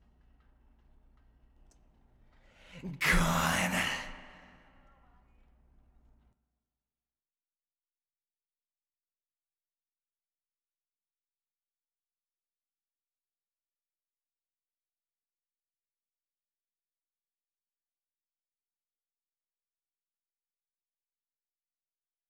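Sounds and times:
supporting verse vocal: 2.8 - 4.7.

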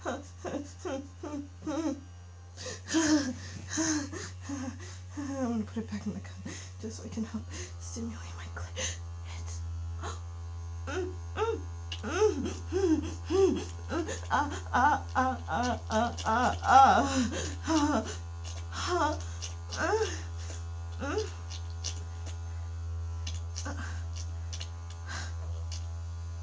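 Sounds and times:
girlie noises: 0.0 - 2.0, 2.7 - 7.5, 8.6 - 10.3, 10.9 - 21.5, 23.6 - 24.2
wet sounds: 11.9 - 22.5, 23.2 - 26.0.

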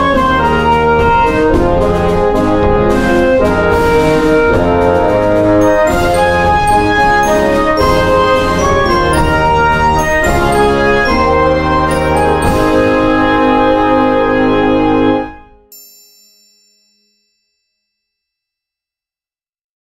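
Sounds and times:
concert band playing an arrangement: 0.0 - 15.1.

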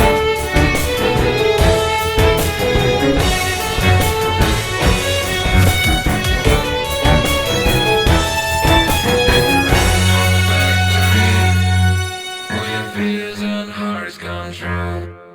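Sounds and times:
drums: 0.0 - 12.1
cello: 0.0 - 15.3
violin: 0.0 - 15.3.

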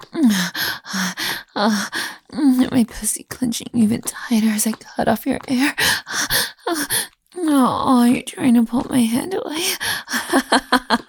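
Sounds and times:
breathy gasps: 0.0 - 2.3, 5.8 - 7.2, 9.6 - 10.3
speech: 0.2 - 2.0, 2.8 - 6.9, 7.5 - 11.0.

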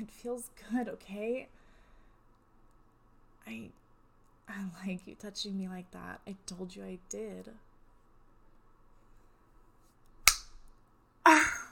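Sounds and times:
speech: 0.0 - 1.6, 3.4 - 3.8, 4.5 - 7.7
slap: 10.3 - 10.6.

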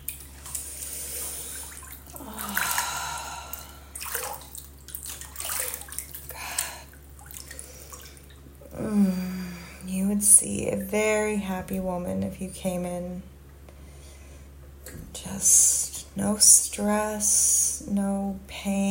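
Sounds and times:
hot water running over body: 0.0 - 9.2
speech: 10.4 - 13.3, 16.2 - 18.9.

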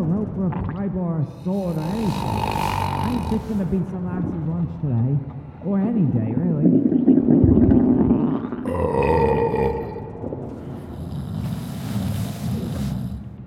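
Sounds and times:
speech: 0.9 - 9.8
snoring: 1.4 - 3.8, 10.6 - 13.4.

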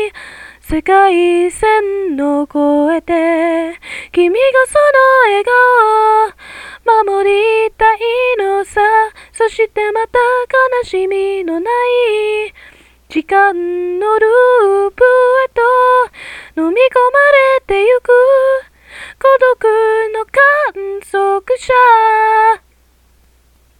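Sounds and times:
woman singing Japanese anime song: 0.0 - 22.6.

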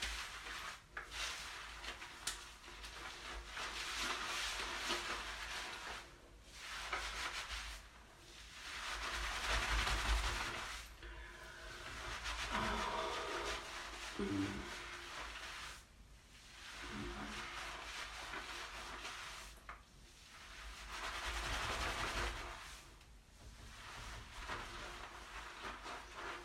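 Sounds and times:
morning shower running: 0.0 - 26.4
person moaning in the shower: 12.5 - 14.8.

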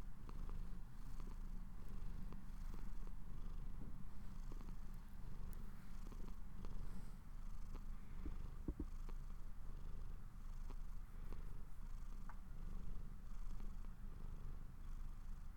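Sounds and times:
domestic cat purring while falling asleep: 0.0 - 15.5.

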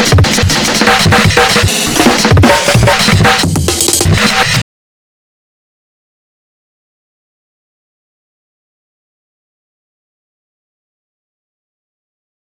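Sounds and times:
drums: 0.0 - 4.6.

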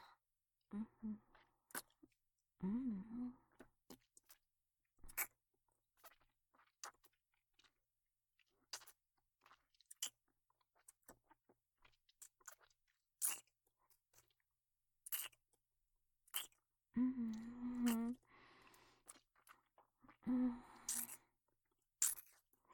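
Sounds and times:
chewing crunchy food while tasting it: 1.7 - 2.2, 3.5 - 4.4, 5.1 - 5.4, 6.0 - 7.8, 8.5 - 14.4, 15.0 - 15.6, 16.3 - 16.6, 17.4 - 20.2, 20.8 - 21.3, 22.0 - 22.7
voiced hums: 2.6 - 3.4, 17.0 - 18.2.

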